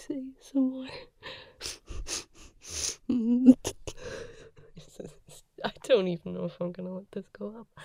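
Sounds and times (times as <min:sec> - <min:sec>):
speech: 0:00.0 - 0:01.4, 0:06.0 - 0:07.8
person sniffing vapor rub: 0:01.6 - 0:03.1.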